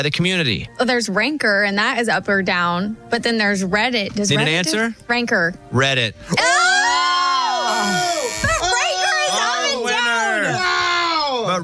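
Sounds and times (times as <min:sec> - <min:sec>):
speech: 0:00.0 - 0:06.8
audience booing: 0:06.4 - 0:10.6.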